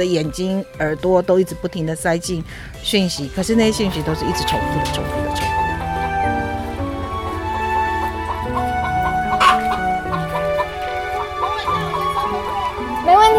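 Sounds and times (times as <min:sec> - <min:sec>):
speech: 0:00.0 - 0:05.2
farmyard poultry calling: 0:03.2 - 0:13.3
faint voices murmuring: 0:03.4 - 0:13.3
farmyard chickens clucking: 0:03.4 - 0:13.3
sharp poultry squawks: 0:03.6 - 0:12.8.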